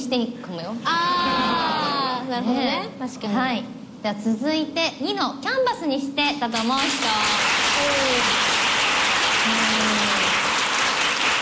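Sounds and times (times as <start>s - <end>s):
speech: 0.1s - 8.4s
audience clapping to vote: 6.5s - 11.3s.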